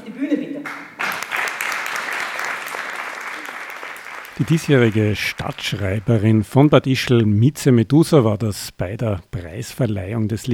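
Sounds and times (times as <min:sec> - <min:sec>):
applause: 0:00.6 - 0:06.8
speech: 0:04.4 - 0:10.5.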